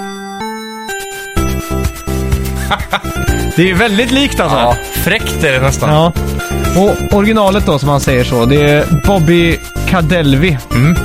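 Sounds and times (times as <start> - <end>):
retro video game music: 0.0 - 11.0
laughter: 2.6 - 4.0
speech: 2.7 - 11.0.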